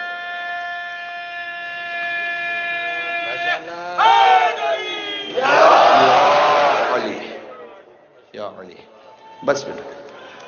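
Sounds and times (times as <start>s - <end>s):
crowd shouting a religious slogan honouring Imam Ali: 2.8s - 7.9s
speech: 8.5s - 10.0s.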